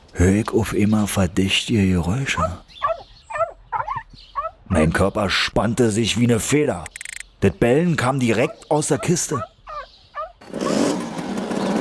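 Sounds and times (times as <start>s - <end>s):
speech: 0.2s - 2.8s, 4.7s - 9.5s
moped engine revving and driving off: 10.4s - 11.8s.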